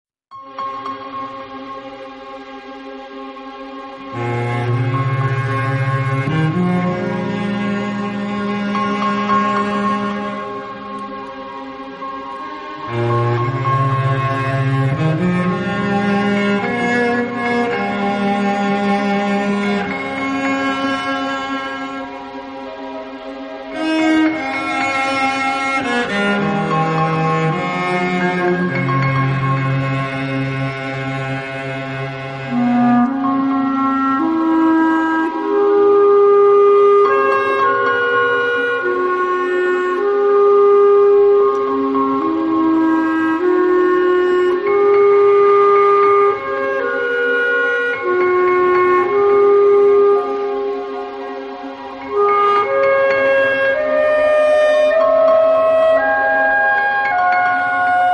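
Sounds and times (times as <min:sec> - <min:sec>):
cello: 0:00.4 - 0:58.1.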